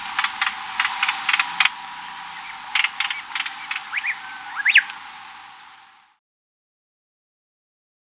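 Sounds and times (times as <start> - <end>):
plain-tailed wren singing in Ecuador: 0.0 - 5.6.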